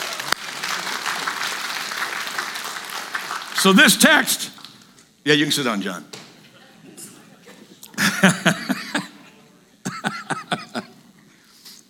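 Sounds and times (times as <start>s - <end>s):
church congregation applause: 0.0s - 4.6s
speech: 3.6s - 4.5s, 5.2s - 6.2s, 8.2s - 8.6s
laughter: 6.5s - 11.3s.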